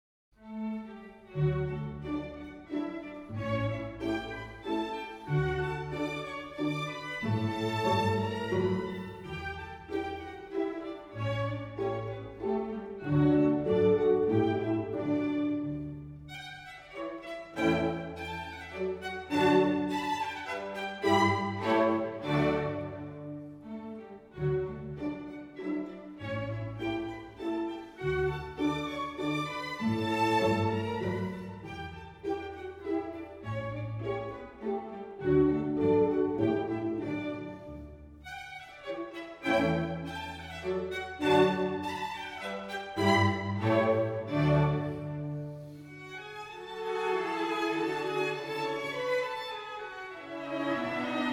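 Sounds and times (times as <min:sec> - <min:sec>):
classical divertimento in D major: 0:00.4 - 0:51.3.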